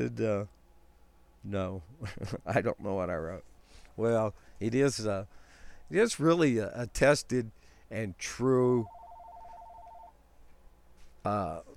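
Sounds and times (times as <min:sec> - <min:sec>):
speech: 0:00.0 - 0:00.6, 0:01.4 - 0:09.0, 0:11.2 - 0:11.7
telephone ring tone chirping in warbling pulses: 0:08.8 - 0:10.2.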